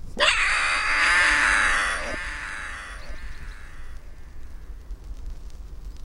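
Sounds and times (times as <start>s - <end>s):
red-crested booming hawk crying: 0.1s - 4.5s.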